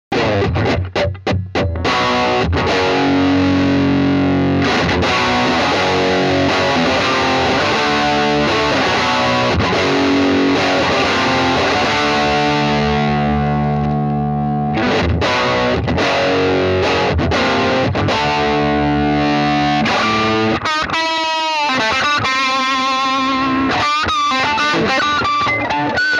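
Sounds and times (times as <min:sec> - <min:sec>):
Gibson ES335 electric guitar rock through JCM amp: 0:00.1 - 0:26.1.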